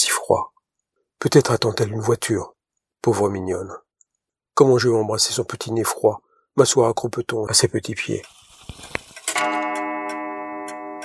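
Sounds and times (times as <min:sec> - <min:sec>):
speech: 0:01.2 - 0:03.8, 0:04.6 - 0:09.0
clock ticking: 0:09.3 - 0:11.0.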